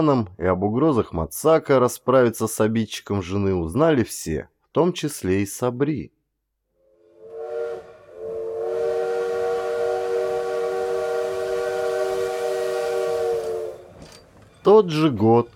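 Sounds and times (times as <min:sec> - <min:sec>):
speech: 0:00.0 - 0:06.2, 0:14.6 - 0:15.5
train whistle at a railway station in Spitak: 0:06.8 - 0:14.1.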